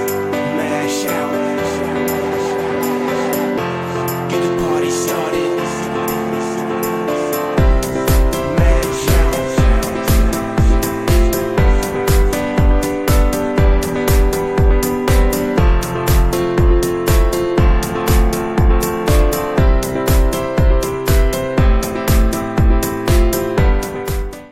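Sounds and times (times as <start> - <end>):
laughter: 0.2 - 13.0
disco dance music ringtone: 0.3 - 24.3.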